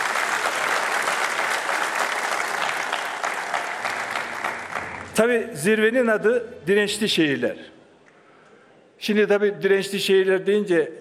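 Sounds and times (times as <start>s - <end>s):
applause: 0.0s - 5.2s
speech: 5.2s - 7.7s, 9.0s - 10.9s.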